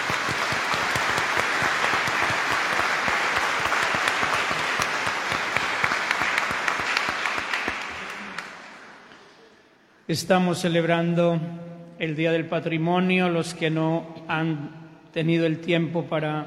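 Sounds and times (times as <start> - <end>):
loud applause: 0.0 - 9.1
speech: 10.1 - 16.4.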